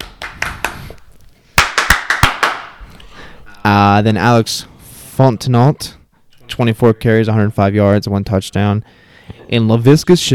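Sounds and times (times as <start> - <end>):
hand claps: 0.0 - 1.0, 1.6 - 2.8
speech: 3.6 - 10.3.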